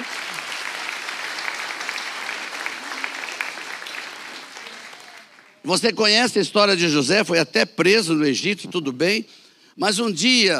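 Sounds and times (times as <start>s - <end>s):
audience applause: 0.0s - 5.7s
speech: 5.6s - 10.5s.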